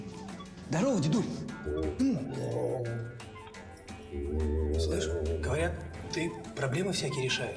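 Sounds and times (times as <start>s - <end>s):
speech: 0.7s - 3.2s, 4.2s - 7.5s
old man purring like a cat: 4.1s - 6.0s.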